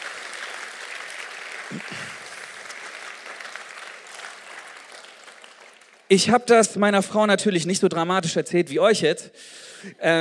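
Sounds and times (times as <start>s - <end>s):
crowd applauding: 0.0s - 6.3s
speech: 1.7s - 2.2s, 6.1s - 10.1s.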